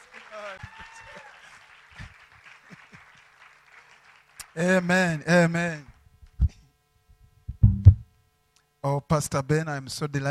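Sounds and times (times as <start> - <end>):
voices cheering: 0.0 - 1.9
audience applauding: 0.0 - 4.9
speech: 4.6 - 5.9, 8.9 - 10.2.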